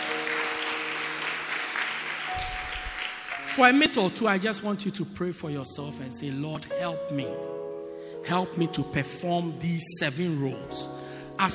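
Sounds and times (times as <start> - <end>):
audience clapping: 0.0 - 3.8
faint sustained organ or keyboard tones: 0.0 - 4.1
speech: 3.6 - 7.6, 8.2 - 11.5.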